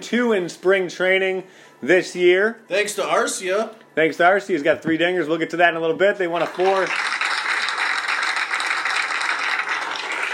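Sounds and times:
speech: 0.0 - 7.1
clapping: 6.4 - 10.3.

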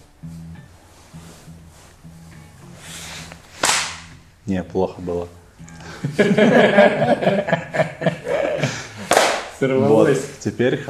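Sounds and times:
sync hand clap: 3.6 - 4.2, 8.9 - 9.6
speech: 4.5 - 5.4, 6.0 - 8.2, 9.6 - 10.8
laughter: 5.8 - 9.8.

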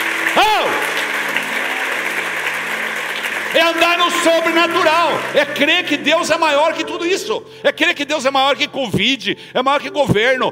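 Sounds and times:
audience applauding: 0.0 - 6.8
speech: 3.6 - 10.4.

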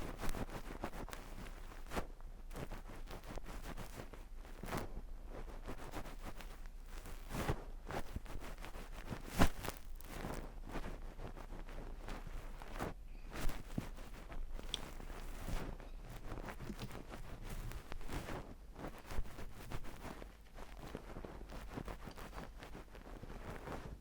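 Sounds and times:
ear cleaning scratching and rustling: 0.0 - 23.8
sharp clicks, scrapes and pops: 14.6 - 15.4, 16.5 - 18.1.

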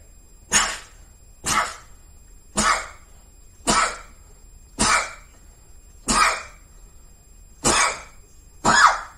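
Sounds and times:
repeated sneezing: 0.5 - 4.2, 4.8 - 5.3, 6.0 - 6.6, 7.6 - 9.1.

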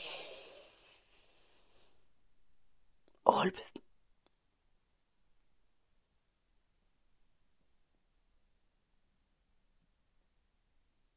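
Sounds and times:
deep inhale through the nose: 0.0 - 2.0
speech: 3.3 - 3.9.

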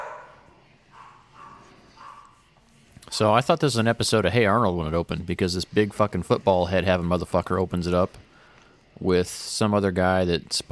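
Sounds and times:
loud barking: 0.0 - 2.3
speech: 3.1 - 8.3, 9.0 - 10.7.

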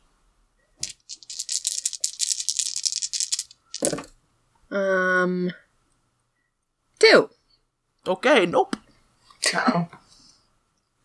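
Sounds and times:
dice rattling and clattering: 0.8 - 4.2
speech: 4.7 - 5.7, 8.1 - 8.8, 9.5 - 10.0.

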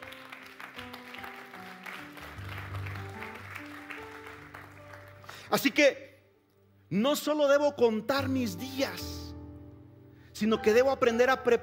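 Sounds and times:
audience applause: 0.0 - 5.6
speech: 5.5 - 6.0, 6.9 - 9.1, 10.4 - 11.6.

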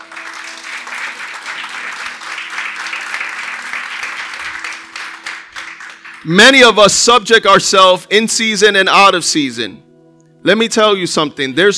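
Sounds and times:
audience round of applause: 0.0 - 6.7
speech: 6.2 - 9.8, 10.4 - 11.7.

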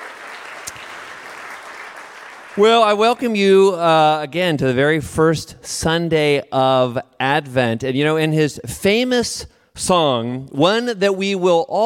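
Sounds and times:
church congregation applauding: 0.0 - 3.3
speech: 2.6 - 11.8.

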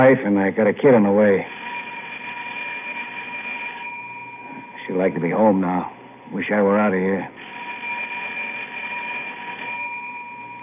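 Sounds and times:
speech: 0.0 - 1.6, 4.9 - 7.4
emergency bell ringing in elevator: 1.5 - 5.5, 7.4 - 10.6.

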